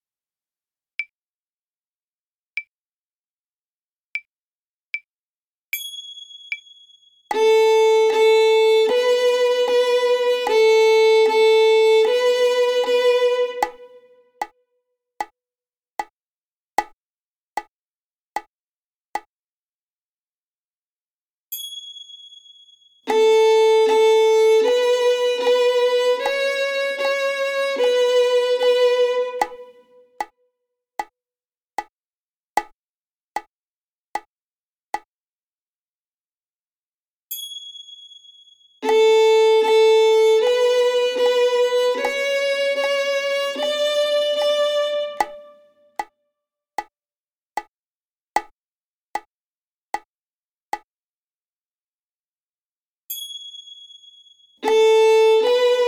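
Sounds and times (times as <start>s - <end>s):
violin imitation playing on the A string: 7.3s - 14.1s, 23.1s - 30.0s, 38.8s - 45.7s, 54.6s - 55.8s.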